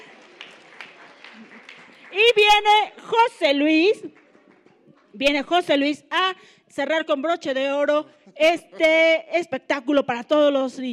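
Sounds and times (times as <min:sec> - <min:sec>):
faint audience applause: 0:00.0 - 0:05.2
speech: 0:02.1 - 0:04.2, 0:05.2 - 0:10.9.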